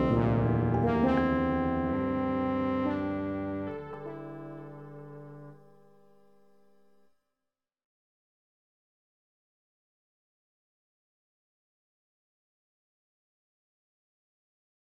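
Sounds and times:
cathedral bell partials in Erfurt: 0.0 - 3.6.

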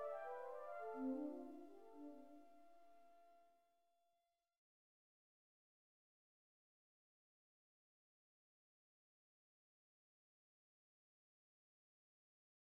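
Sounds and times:
fractal music chord progressions in comma and septimal comma steps: 0.0 - 2.7.

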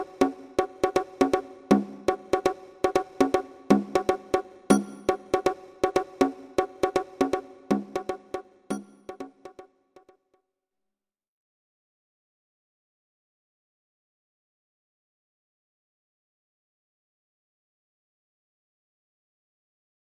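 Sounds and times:
non-repeating bongos playing: 0.0 - 9.7.

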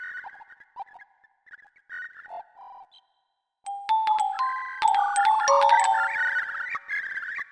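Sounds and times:
curlew fractal tune: 3.7 - 7.1.

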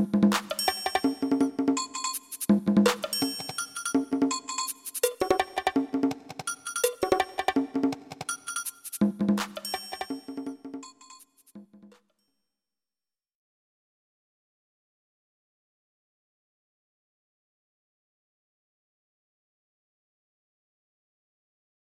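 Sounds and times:
percussion medley: 0.0 - 12.0.

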